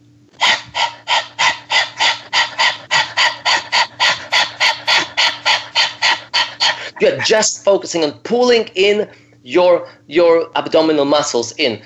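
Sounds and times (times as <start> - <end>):
dog-like panting breathing exercise: 0.4 - 7.3
speech: 7.0 - 11.8.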